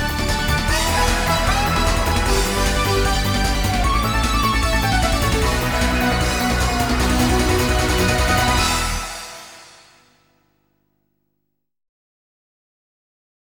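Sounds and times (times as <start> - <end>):
dance music: 0.0 - 9.9.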